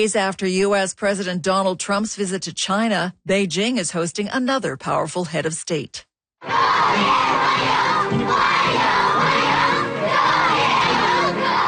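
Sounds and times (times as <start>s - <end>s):
speech: 0.0s - 9.5s
crowd of school children cheering: 6.4s - 11.6s.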